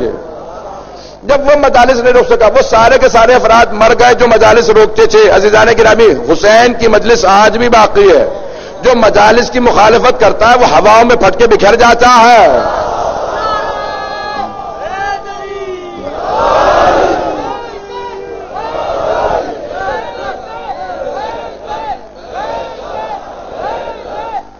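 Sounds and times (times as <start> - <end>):
speech: 1.2 - 12.8
crowd chanting a slogan in unison: 12.6 - 24.5.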